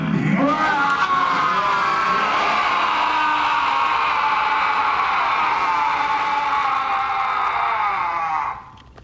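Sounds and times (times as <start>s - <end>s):
Klingon warrior yell: 0.2s - 8.7s.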